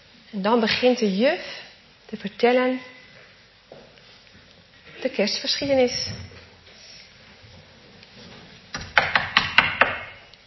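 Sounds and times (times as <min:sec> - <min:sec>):
speech: 0:00.3 - 0:03.0, 0:05.0 - 0:06.3
knocking on a door: 0:08.8 - 0:10.1.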